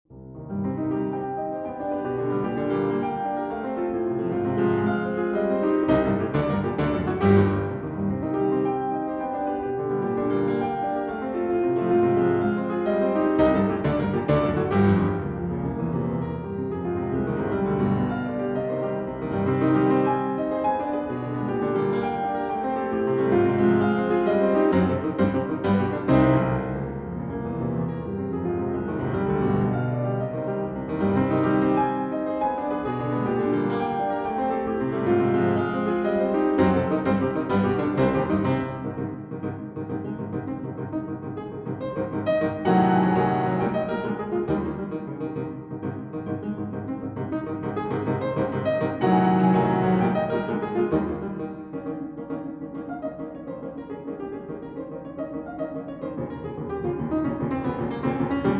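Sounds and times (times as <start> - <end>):
piano sonata, allegro molto e vivace: 0.0 - 58.5.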